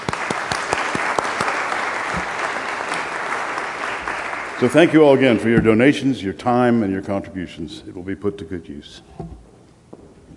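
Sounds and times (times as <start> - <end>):
crowd applauding: 0.0 - 5.3
speech: 4.6 - 9.2.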